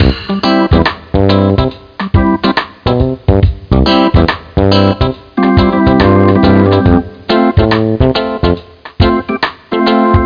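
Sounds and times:
reggae music: 0:00.0 - 0:10.2.

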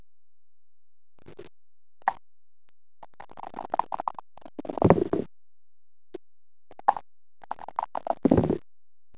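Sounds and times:
dice: 0:03.0 - 0:05.3, 0:06.7 - 0:08.6.

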